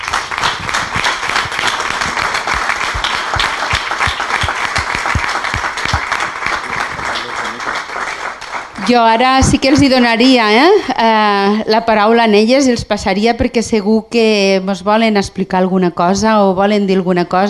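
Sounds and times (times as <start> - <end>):
audience applause: 0.0 - 9.9
speech: 8.9 - 17.4.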